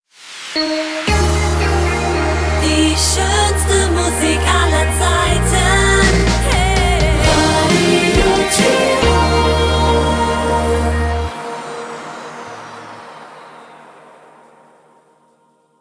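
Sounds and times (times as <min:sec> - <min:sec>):
transition sound: 0:00.0 - 0:15.6.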